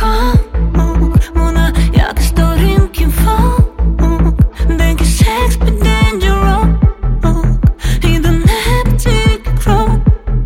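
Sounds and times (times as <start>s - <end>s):
indie rock music: 0.2s - 10.4s.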